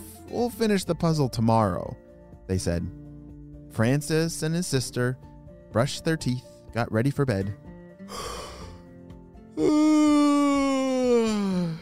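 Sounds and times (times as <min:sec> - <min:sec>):
speech: 0:00.3 - 0:03.0, 0:03.7 - 0:08.4, 0:09.6 - 0:10.2
narrator imitating a sleepy yawn: 0:08.1 - 0:08.8, 0:09.6 - 0:11.7.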